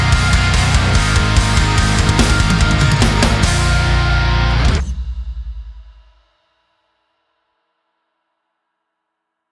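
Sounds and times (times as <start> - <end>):
shred backing track: 0.5 - 5.8.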